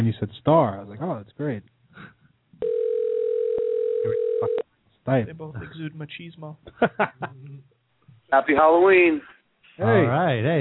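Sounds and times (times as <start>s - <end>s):
speech: 0.0s - 2.1s, 4.0s - 7.7s, 8.3s - 10.5s
telephone dial tone: 2.6s - 4.6s
laughter: 6.7s - 7.6s.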